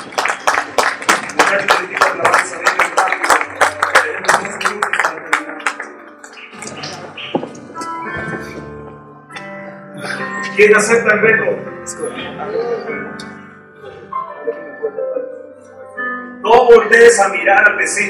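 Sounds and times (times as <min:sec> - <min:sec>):
audience applause: 0:00.0 - 0:07.2
speech: 0:10.6 - 0:13.3, 0:16.7 - 0:18.0.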